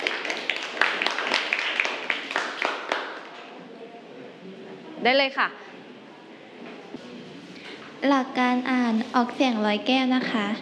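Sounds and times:
classroom applause: 0.0s - 3.5s
speech: 5.0s - 5.6s, 8.0s - 10.6s.

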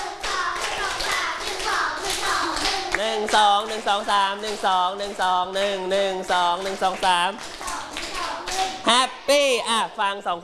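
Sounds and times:
class of children clapping hands softly in rhythm: 0.0s - 5.8s, 6.5s - 8.8s
speech: 3.0s - 7.6s, 8.9s - 10.4s.

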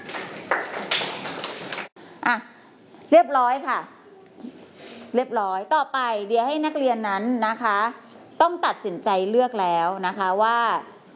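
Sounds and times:
classroom students clapping: 0.0s - 2.0s
speech: 2.3s - 2.5s, 3.1s - 11.1s.

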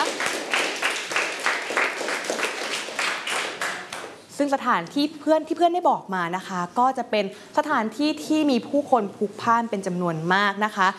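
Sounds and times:
children clapping hands: 0.0s - 4.2s
speech: 4.4s - 10.9s.

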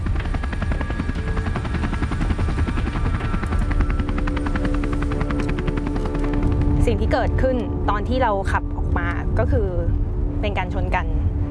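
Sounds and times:
helicopter taking off: 0.0s - 11.4s
speech: 6.9s - 11.2s.

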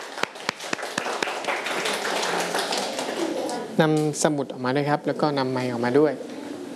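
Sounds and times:
audience clapping: 0.0s - 3.6s
speech: 3.8s - 6.3s.

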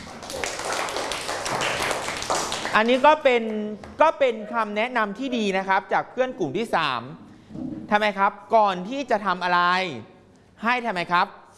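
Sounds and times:
faint clapping from a class audience: 0.0s - 3.6s
speech: 2.8s - 11.4s.

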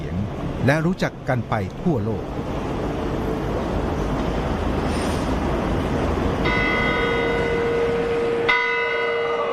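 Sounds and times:
steady outdoor noise: 0.0s - 9.5s
speech: 0.6s - 2.5s
clock tower bells chiming: 6.4s - 9.5s.

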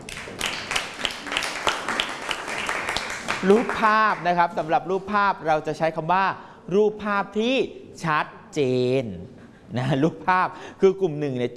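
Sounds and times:
clapping hands, applause: 0.0s - 4.4s
speech: 3.4s - 11.5s.

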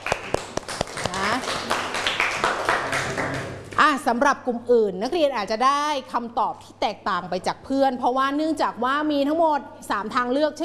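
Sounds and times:
classroom clapping for a student: 0.0s - 3.8s
speech: 4.1s - 10.6s.

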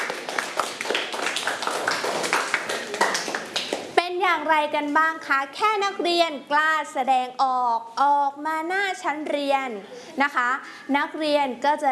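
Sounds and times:
children clapping for a classmate: 0.0s - 4.0s
speech: 4.5s - 11.9s.

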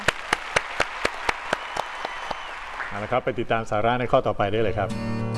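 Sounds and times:
audience applause: 0.0s - 3.5s
speech: 2.9s - 5.2s.

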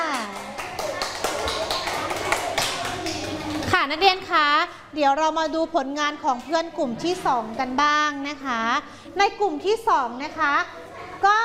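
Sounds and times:
students clapping for a group: 0.0s - 3.7s
speech: 3.8s - 11.4s.

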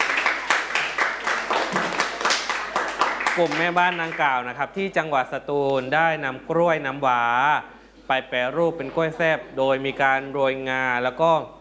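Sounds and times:
classroom applause: 0.0s - 4.4s
speech: 3.4s - 11.6s.

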